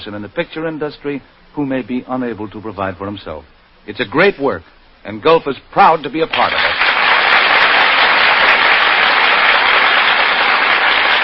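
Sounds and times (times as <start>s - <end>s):
speech: 0.0s - 6.8s
studio audience applause: 6.3s - 11.2s.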